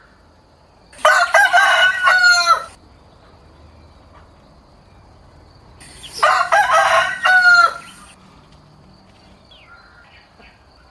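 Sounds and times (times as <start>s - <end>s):
rooster crowing: 1.0s - 2.8s, 5.8s - 8.2s.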